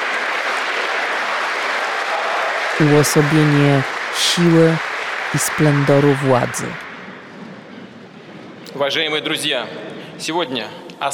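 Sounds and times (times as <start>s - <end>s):
audience applause: 0.0s - 7.9s
speech: 2.8s - 6.8s, 8.8s - 11.1s.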